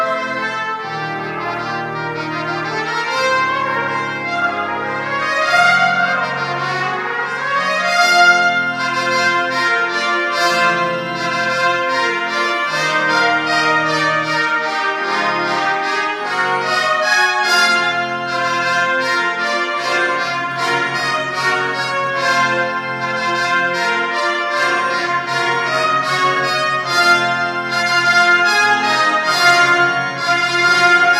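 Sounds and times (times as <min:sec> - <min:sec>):
two trumpets playing a fanfare: 0:00.0 - 0:31.1.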